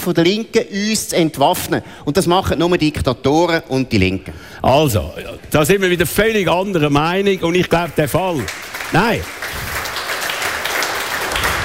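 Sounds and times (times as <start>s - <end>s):
speech: 0.0s - 9.7s
audience clapping during a heated political discussion: 8.0s - 11.6s.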